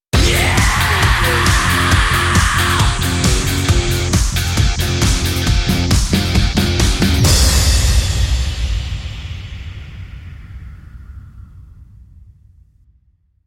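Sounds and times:
raucous hard rock heavy metal music: 0.1 - 8.7.

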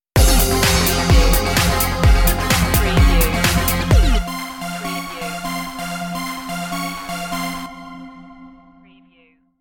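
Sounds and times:
music stinger: 0.2 - 7.2.

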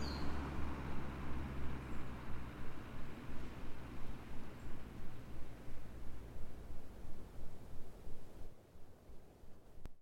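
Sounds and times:
car driving by in a forest car park: 0.0 - 6.8.

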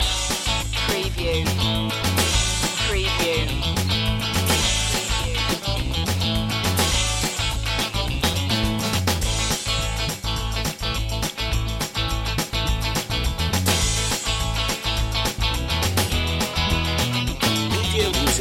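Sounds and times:
stomp loop: 0.0 - 18.3.

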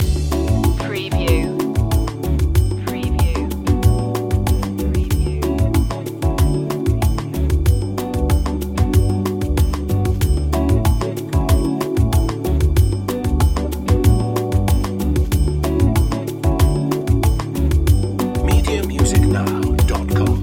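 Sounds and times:
smooth bossa nova loop: 0.0 - 20.4.

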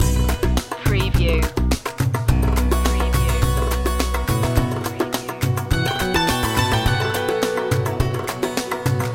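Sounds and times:
middle eastern oasis music loop: 0.0 - 9.1.

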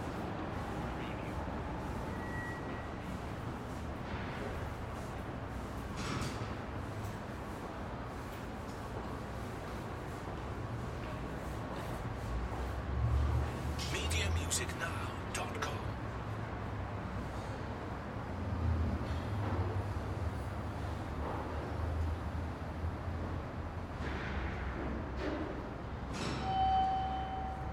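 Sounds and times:
parking structure ambience: 0.0 - 27.7.

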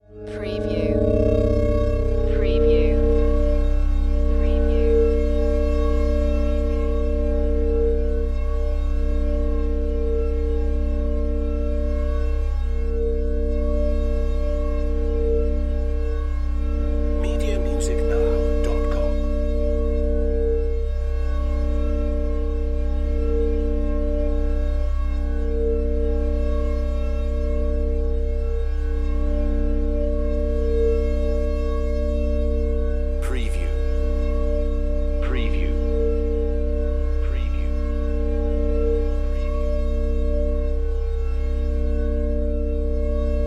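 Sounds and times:
synth bed production element: 0.0 - 43.4.

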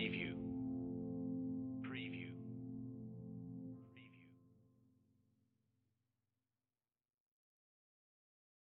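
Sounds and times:
romantic reflective music: 0.0 - 4.5.

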